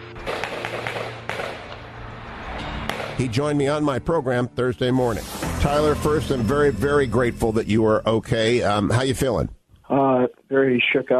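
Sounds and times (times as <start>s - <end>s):
gunshots during a shooting at the Borderline Bar in Thousand Oaks: 0.2s - 1.9s, 2.9s - 3.3s
speech: 3.2s - 11.1s.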